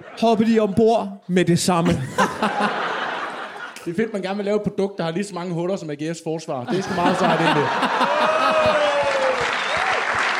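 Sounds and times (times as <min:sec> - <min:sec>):
speech: 0:00.1 - 0:02.8, 0:03.8 - 0:08.8
laughter: 0:01.8 - 0:04.0, 0:06.7 - 0:09.6
audience applause after a joke on a Danish comedy show: 0:06.8 - 0:10.3.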